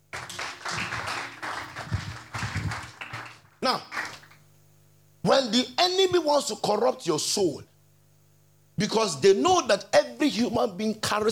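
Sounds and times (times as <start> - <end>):
crowd clapping: 0.0 - 4.4
speech: 3.7 - 3.9, 5.3 - 7.7, 8.8 - 11.3.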